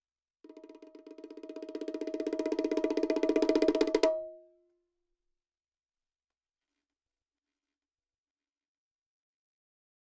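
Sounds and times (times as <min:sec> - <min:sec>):
percussion roll from Roland MV8800: 0:00.5 - 0:04.3.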